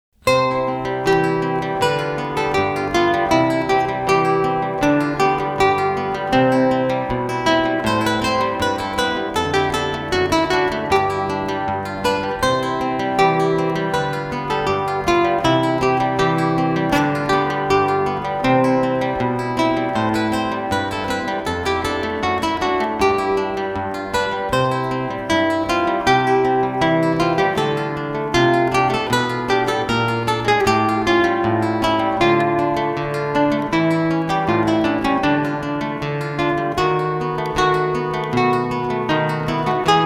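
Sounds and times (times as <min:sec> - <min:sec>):
prelude for two guitars: 0:00.2 - 0:40.0.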